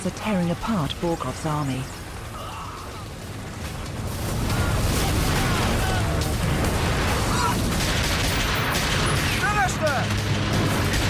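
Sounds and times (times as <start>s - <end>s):
speech: 0.0s - 2.0s
gunfire at militia fighters in a corridor: 4.2s - 11.0s.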